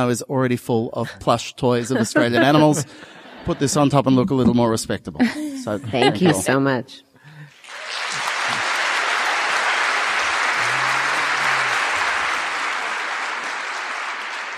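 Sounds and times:
speech: 0.0 - 7.1
laughter: 1.6 - 4.6, 5.2 - 6.5, 8.0 - 12.9
large crowd clapping: 2.0 - 3.1, 7.5 - 14.5.

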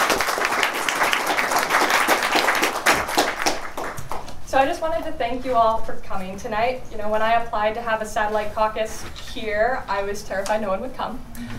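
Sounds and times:
audience applause: 0.0 - 4.3
speech: 4.6 - 11.5.

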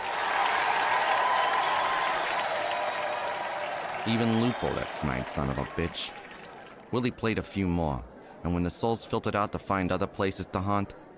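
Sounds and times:
crowd applauding: 0.0 - 6.9
speech: 4.0 - 6.2, 6.9 - 11.0.

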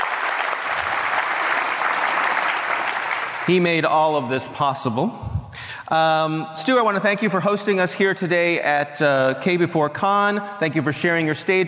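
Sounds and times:
audience applause: 0.0 - 3.6
speech: 3.5 - 11.6.

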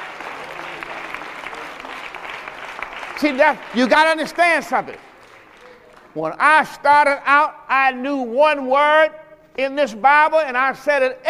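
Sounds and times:
audience clapping: 0.0 - 6.5
speech: 3.2 - 5.1, 6.1 - 11.2.

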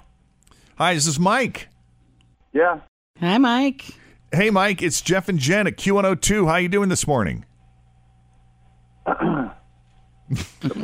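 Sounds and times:
speech: 0.8 - 1.7, 2.5 - 7.5, 10.3 - 10.8
man calling in to a radio morning show clearing his throat: 9.1 - 9.6, 10.3 - 10.8.

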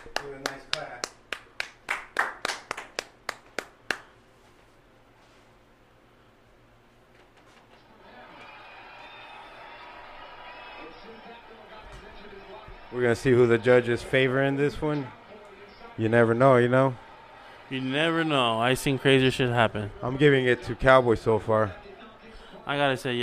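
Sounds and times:
hand clapping: 0.0 - 4.2
speech: 0.5 - 1.0, 12.9 - 15.2, 16.0 - 17.0, 17.7 - 21.8, 22.7 - 23.2.

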